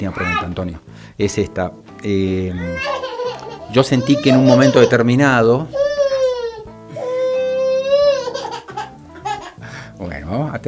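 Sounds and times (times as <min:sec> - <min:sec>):
speech: 0:00.0 - 0:03.0, 0:03.7 - 0:05.8
small child crying: 0:02.5 - 0:05.1, 0:05.7 - 0:09.6.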